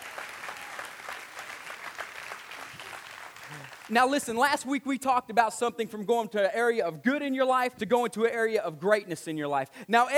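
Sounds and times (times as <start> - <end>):
audience hand clapping: 0.0 - 4.3
speech: 3.5 - 10.1.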